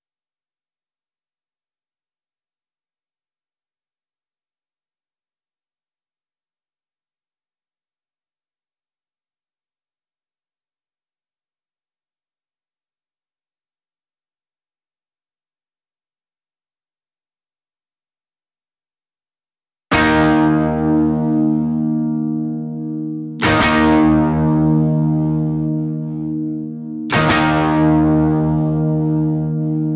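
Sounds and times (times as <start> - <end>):
guitars: 19.9 - 29.9.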